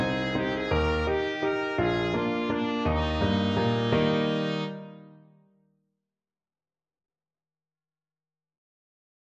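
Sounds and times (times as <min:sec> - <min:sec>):
trumpet: 0:00.0 - 0:05.2.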